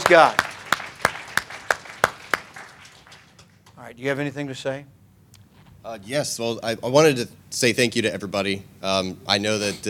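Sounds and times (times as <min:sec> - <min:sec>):
hand claps at a church service: 0:00.0 - 0:03.8
speech: 0:00.1 - 0:00.4, 0:03.9 - 0:05.0, 0:05.8 - 0:09.8.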